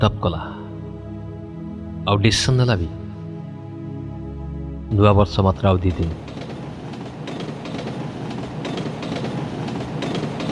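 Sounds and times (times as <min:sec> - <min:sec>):
speech: 0:00.0 - 0:00.5, 0:02.0 - 0:03.0, 0:04.9 - 0:06.3
train travelling on rails toward Berhampur: 0:05.8 - 0:10.5.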